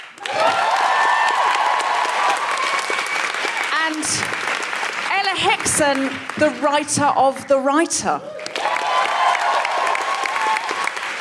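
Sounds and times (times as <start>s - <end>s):
cheers: 0.0s - 5.1s, 8.2s - 11.1s
audience applause: 0.0s - 6.8s, 8.3s - 11.1s
speech: 4.0s - 4.4s, 5.2s - 8.4s.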